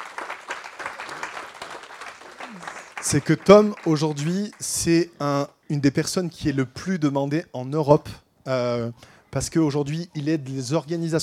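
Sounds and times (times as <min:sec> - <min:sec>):
audience applause: 0:00.0 - 0:04.7
speech: 0:02.5 - 0:11.2.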